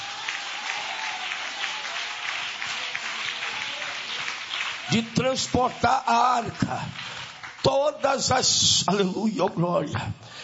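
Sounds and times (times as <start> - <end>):
audience clapping hands: 0.0 - 9.2
speech: 4.9 - 10.3.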